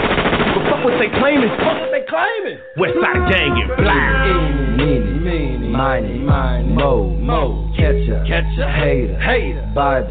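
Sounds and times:
gunfire bursts: 0.0 - 2.0
speech: 0.9 - 10.0
raised voices shouting and wailing: 2.8 - 4.6.

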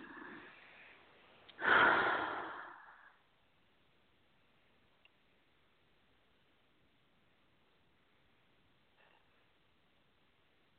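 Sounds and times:
deep breath: 0.0 - 3.3.

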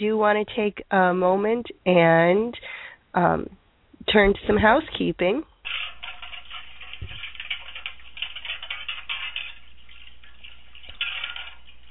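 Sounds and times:
speech: 0.0 - 5.5
washing dishes sound effect: 5.7 - 11.8.

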